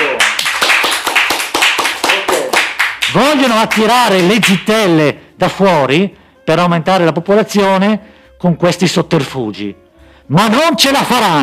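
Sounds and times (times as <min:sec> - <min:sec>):
audience applause: 0:00.0 - 0:04.6
speech: 0:03.1 - 0:11.4.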